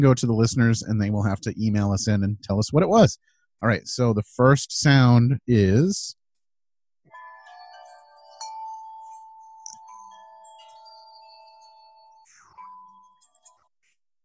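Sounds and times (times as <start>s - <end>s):
speech: 0.0s - 6.2s
wind chimes: 7.1s - 13.7s.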